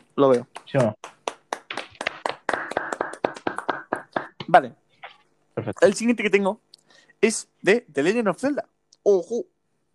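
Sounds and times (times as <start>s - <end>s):
speech: 0.2s - 1.1s, 4.5s - 4.8s, 5.6s - 9.6s
hand clapping: 0.2s - 4.4s.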